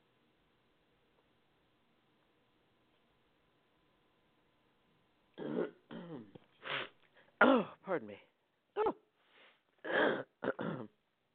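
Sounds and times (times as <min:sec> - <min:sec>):
throat clearing: 0:05.4 - 0:06.4, 0:09.9 - 0:11.0
speech: 0:07.5 - 0:08.3.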